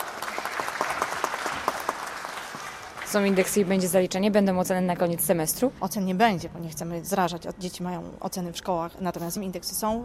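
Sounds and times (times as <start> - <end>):
group applause for a student in a music class: 0.0 - 3.7
speech: 3.1 - 10.0.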